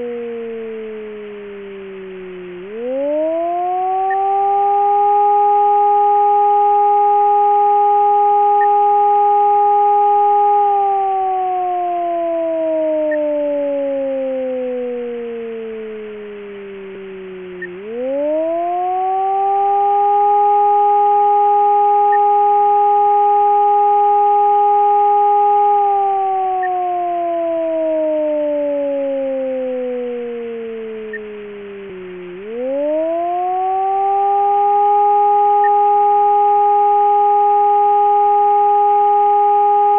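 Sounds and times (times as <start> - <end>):
air raid siren: 0.0 - 39.9.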